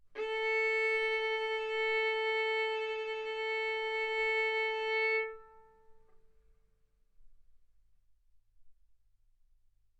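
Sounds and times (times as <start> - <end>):
violin arco on A string: 0.1 - 6.2.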